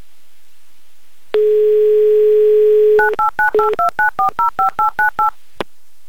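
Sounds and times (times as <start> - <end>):
telephone number being dialed with DTMF tones: 1.4 - 5.3.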